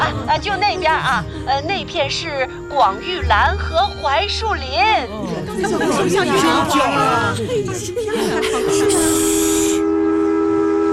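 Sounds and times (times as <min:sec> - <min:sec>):
speech: 0:00.3 - 0:09.5
laughter: 0:05.0 - 0:09.6
small train blowing its whistle: 0:08.8 - 0:10.9.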